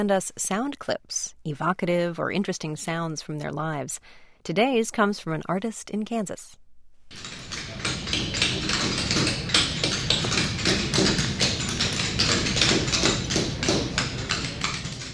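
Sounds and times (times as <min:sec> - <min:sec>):
speech: 0:00.0 - 0:07.4
hammers and chisels striking stone in a stone carving workshop: 0:07.1 - 0:15.1.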